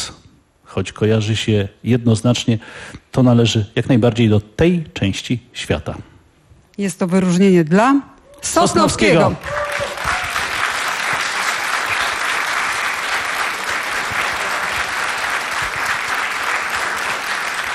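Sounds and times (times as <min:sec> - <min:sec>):
speech: 0:00.7 - 0:06.1, 0:06.8 - 0:09.6
audience applause at an award presentation: 0:09.2 - 0:17.7.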